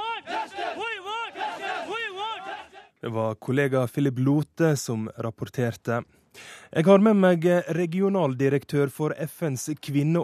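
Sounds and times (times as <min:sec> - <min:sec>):
protest crowd chanting at a demonstration: 0:00.0 - 0:03.0
speech: 0:03.0 - 0:10.2.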